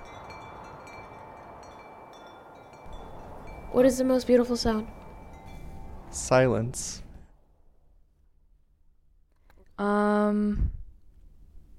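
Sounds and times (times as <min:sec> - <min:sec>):
wind blowing through trees: 0:00.0 - 0:07.6
speech: 0:03.7 - 0:05.0, 0:06.2 - 0:07.0, 0:09.8 - 0:10.7.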